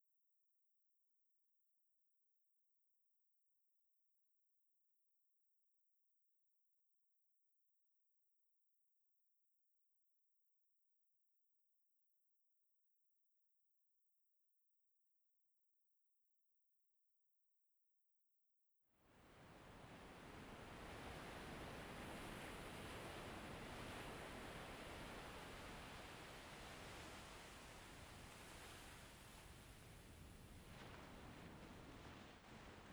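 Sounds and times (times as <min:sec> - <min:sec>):
waves: 0:19.2 - 0:32.9.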